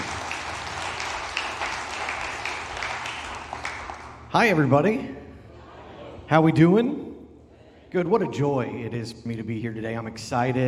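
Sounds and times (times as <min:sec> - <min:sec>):
church congregation clapping to welcome a guest pastor: 0:00.0 - 0:04.5
speech: 0:04.4 - 0:05.2, 0:06.3 - 0:07.1, 0:07.9 - 0:10.6.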